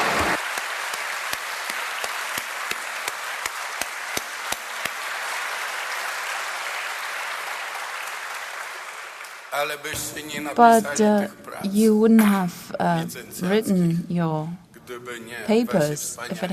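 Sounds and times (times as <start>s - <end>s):
audience applause: 0.0s - 10.9s
speech: 9.6s - 16.5s.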